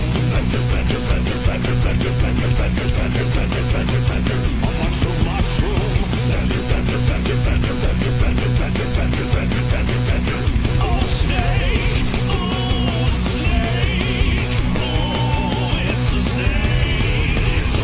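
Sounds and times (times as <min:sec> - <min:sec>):
metal music: 0:00.0 - 0:17.8.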